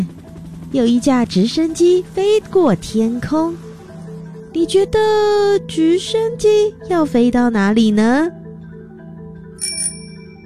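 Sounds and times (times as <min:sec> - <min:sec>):
speech: 0:00.7 - 0:03.6, 0:04.5 - 0:08.4
bicycle bell ringing: 0:09.6 - 0:10.4.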